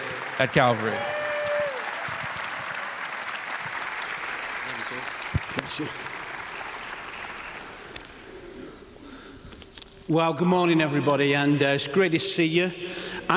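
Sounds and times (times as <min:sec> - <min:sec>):
church congregation at Calvary applauding a guest speaker: 0:00.0 - 0:08.3
speech: 0:00.4 - 0:01.2, 0:05.8 - 0:06.1, 0:10.1 - 0:13.3.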